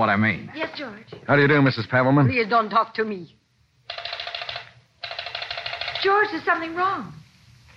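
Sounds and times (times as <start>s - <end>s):
speech: 0.0s - 4.0s, 6.0s - 7.2s
rotary telephone being dialed: 3.9s - 6.1s.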